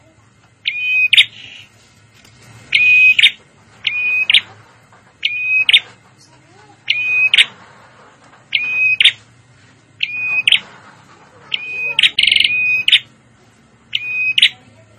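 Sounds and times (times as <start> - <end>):
prinia calls: 0.6 - 1.7, 2.7 - 4.6, 5.2 - 7.6, 8.5 - 9.2, 10.0 - 10.7, 11.4 - 13.2, 13.9 - 14.6.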